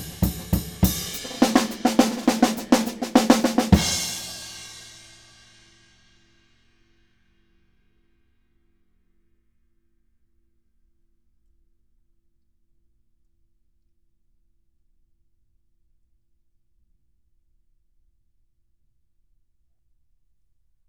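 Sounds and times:
drum in a dry studio: 0.0s - 5.5s.

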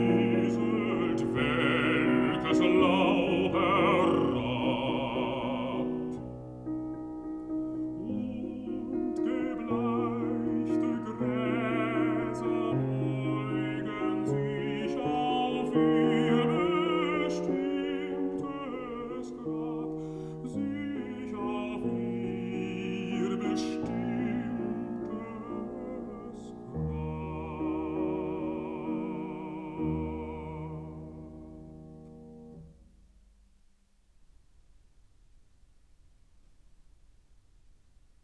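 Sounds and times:
person singing a song with piano: 0.0s - 6.3s, 7.6s - 31.2s
piano accompanying a song: 0.0s - 38.2s.

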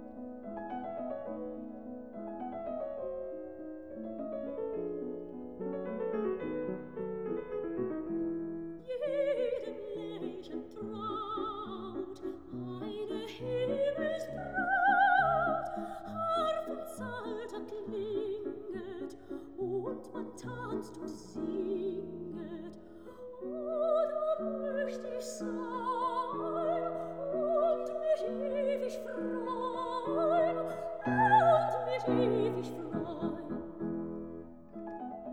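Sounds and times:
piano: 0.0s - 35.3s
person singing: 8.9s - 33.7s.

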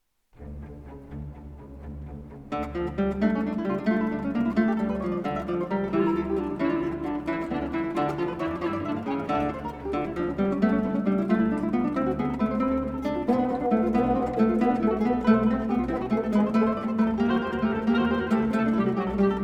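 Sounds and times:
orchestra playing: 0.4s - 19.4s
two guitars: 2.3s - 19.4s.

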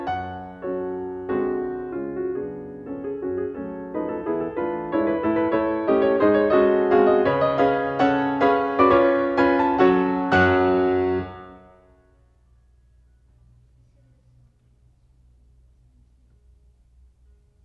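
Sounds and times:
piano mazurka in B minor: 0.0s - 12.2s.

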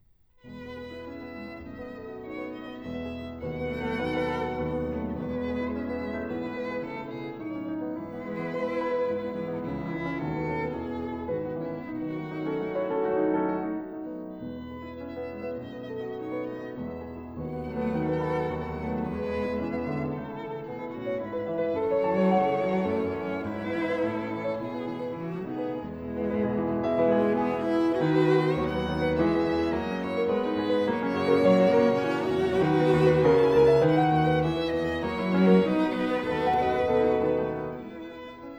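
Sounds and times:
piano trio playing an andante: 0.4s - 38.5s.

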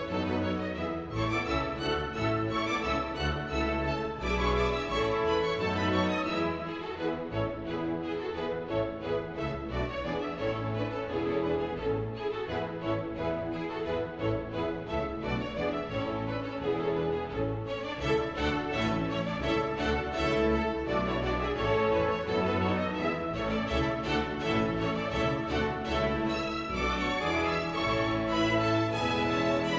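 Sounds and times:
orchestra playing a suite prelude: 0.0s - 29.7s.

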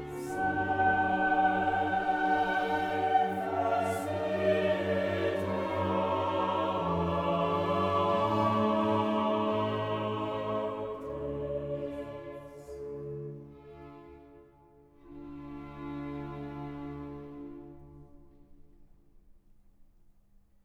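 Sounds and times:
requiem soloists singing: 0.0s - 12.5s.

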